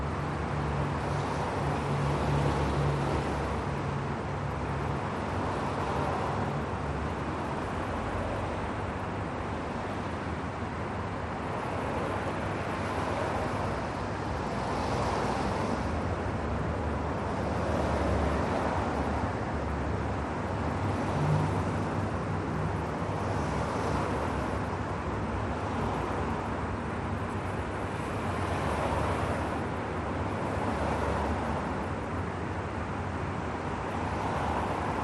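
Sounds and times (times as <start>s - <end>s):
city traffic: 0.0s - 35.0s.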